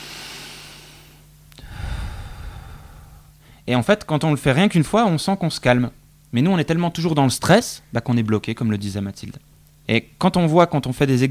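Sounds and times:
person breathing deeply: 0.0s - 3.7s
speech: 3.7s - 11.3s.

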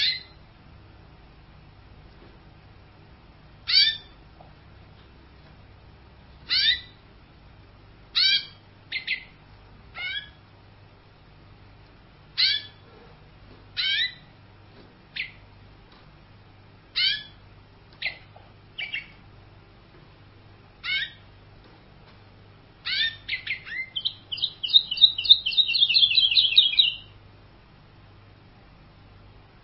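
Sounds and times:
canary song with high whistles, buzzy rattles and trills: 0.0s - 0.5s, 3.6s - 4.3s, 6.4s - 7.1s, 8.1s - 10.5s, 12.3s - 13.1s, 13.7s - 14.4s, 15.0s - 15.5s, 16.8s - 19.3s, 20.8s - 21.4s, 22.8s - 27.2s.

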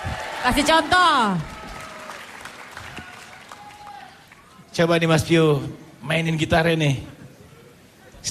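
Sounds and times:
audience applause at an Indonesian concert: 0.0s - 4.6s
speech: 0.4s - 1.5s, 4.8s - 7.1s.

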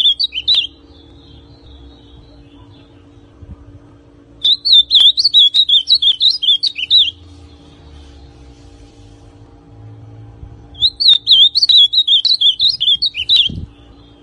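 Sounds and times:
ultramarine grosbeak song: 0.0s - 3.4s, 4.4s - 8.4s, 10.7s - 14.2s.

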